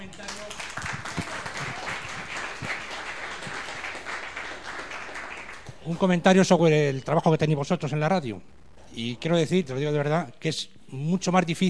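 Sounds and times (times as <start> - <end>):
audience applause: 0.1 - 6.2
speech: 5.9 - 11.6.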